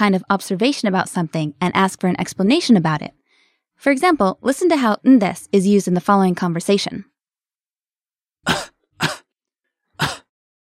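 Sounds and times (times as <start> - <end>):
speech: 0.0 - 3.2, 3.8 - 7.1
man coughing: 8.4 - 9.3, 10.0 - 10.3.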